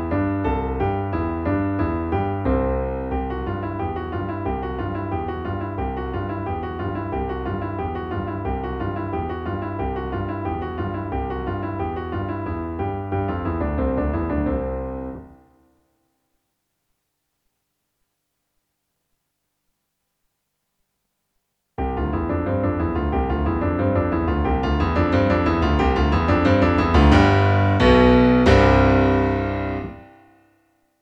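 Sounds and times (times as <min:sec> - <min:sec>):
slow piano backing: 0:00.0 - 0:15.5, 0:21.8 - 0:30.2.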